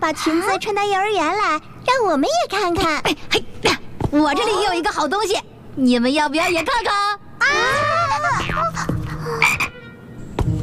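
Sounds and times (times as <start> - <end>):
speech: 0.1 - 8.6
frog croaking: 9.4 - 9.8.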